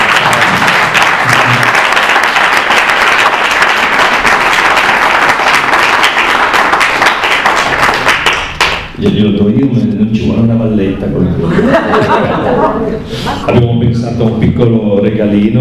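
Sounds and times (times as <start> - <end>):
audience applause: 0.0 - 9.0
laughter: 0.3 - 1.8, 11.3 - 13.7
speech: 9.0 - 15.5.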